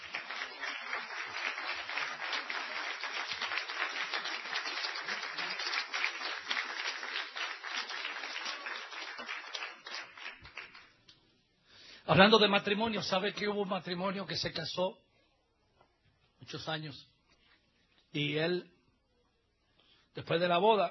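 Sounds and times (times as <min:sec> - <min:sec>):
church congregation clapping during a service: 0:00.0 - 0:11.2
speech: 0:12.1 - 0:15.1, 0:16.5 - 0:17.1, 0:18.1 - 0:18.8, 0:20.2 - 0:20.9.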